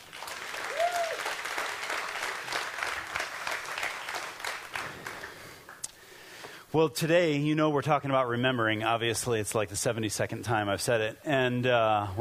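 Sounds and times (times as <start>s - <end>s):
audience clapping at a school morning gathering: 0.0s - 6.0s
person whooping: 0.6s - 1.4s
speech: 6.7s - 12.1s.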